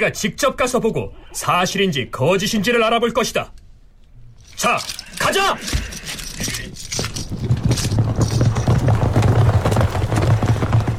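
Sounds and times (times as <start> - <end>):
speech: 0.0 - 3.6, 4.6 - 7.0
metal tack jingling: 4.4 - 8.8
horse hooves galloping: 4.8 - 10.9.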